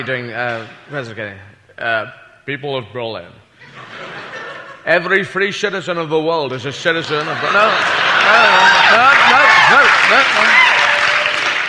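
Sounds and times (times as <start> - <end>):
speech: 0.0 - 4.0, 4.8 - 10.7
laughter: 3.6 - 5.0, 7.0 - 11.2
audience applause: 7.1 - 11.6.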